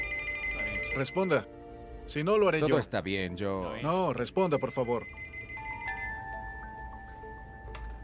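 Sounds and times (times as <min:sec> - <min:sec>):
telephone ringing: 0:00.0 - 0:01.4, 0:04.3 - 0:08.0
speech: 0:01.0 - 0:05.2.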